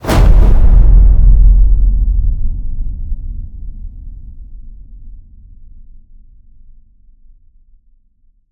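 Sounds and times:
designed cinematic fire hit: 0:00.0 - 0:05.7.

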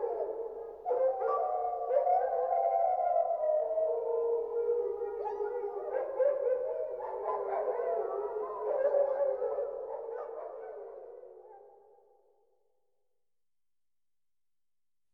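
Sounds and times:
wolves howling together: 0:00.0 - 0:10.9.

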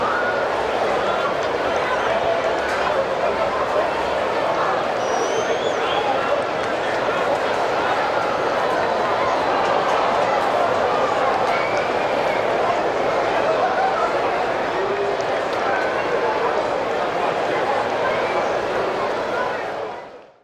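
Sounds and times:
large stadium crowd walla: 0:00.0 - 0:20.4.

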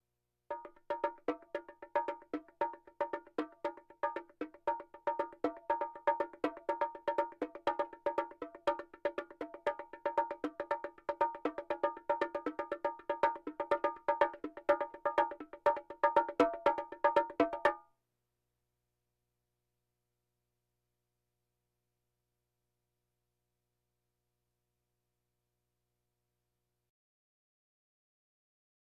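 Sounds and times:
bongos: 0:00.5 - 0:17.8.

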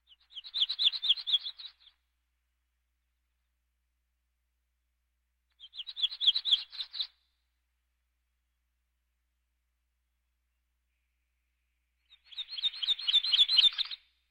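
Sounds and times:
birds: 0:00.0 - 0:02.1, 0:05.5 - 0:07.3, 0:10.8 - 0:14.2.

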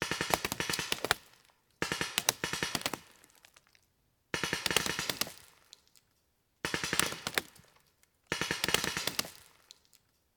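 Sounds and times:
paintball gun impact: 0:00.0 - 0:03.4, 0:04.4 - 0:05.5, 0:06.7 - 0:07.7, 0:08.3 - 0:09.5.

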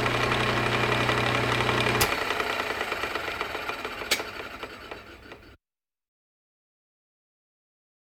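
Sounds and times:
walking machinery: 0:00.0 - 0:05.6.

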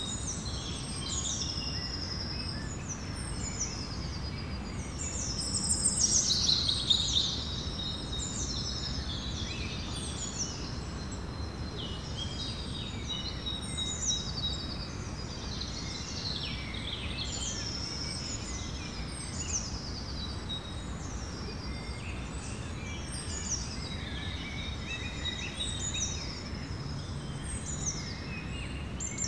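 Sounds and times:
birds in the evening: 0:00.0 - 0:29.2.

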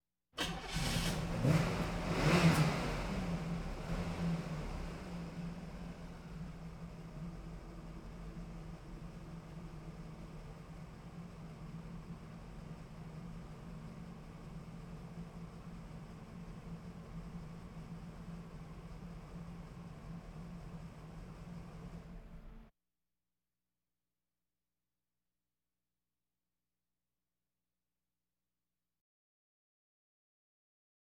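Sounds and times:
various automobiles: 0:00.4 - 0:22.7.

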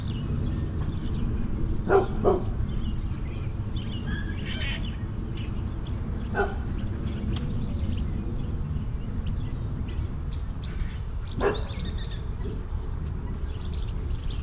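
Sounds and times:
birds in suburban morning: 0:00.0 - 0:14.4
insects in suburban morning: 0:00.0 - 0:14.4
dogs barking in suburban morning: 0:01.8 - 0:02.7, 0:04.4 - 0:05.0, 0:06.2 - 0:06.8, 0:11.3 - 0:12.0.

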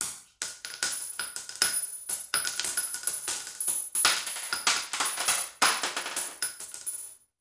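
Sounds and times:
bullet shell: 0:00.0 - 0:04.8, 0:06.1 - 0:07.2.

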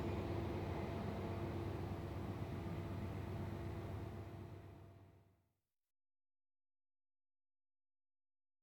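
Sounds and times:
trains: 0:00.0 - 0:05.2.

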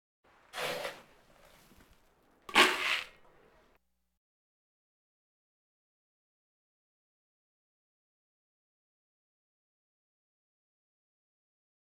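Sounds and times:
farm animal snorts: 0:00.5 - 0:01.3.

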